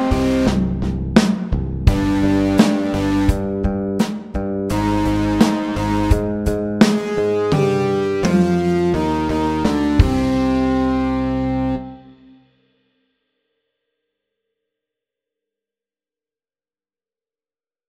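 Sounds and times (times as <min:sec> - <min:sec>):
slow electric rock: 0:00.0 - 0:12.0.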